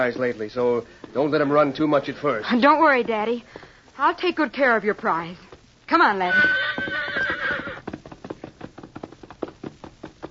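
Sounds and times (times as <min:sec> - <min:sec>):
speech: 0:00.0 - 0:06.7
thoroughbred horse hooves trotting: 0:00.0 - 0:10.3
thoroughbred horse whinnying on open rangeland: 0:06.2 - 0:07.9.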